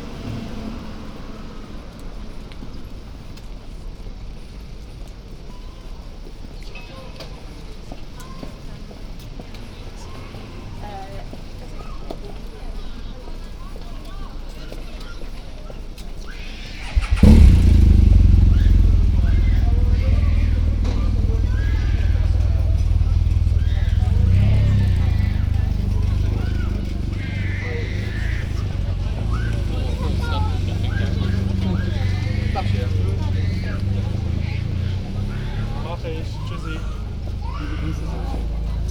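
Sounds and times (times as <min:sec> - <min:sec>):
city street voices: 0:00.0 - 0:38.9
heavy rumble: 0:16.8 - 0:37.4.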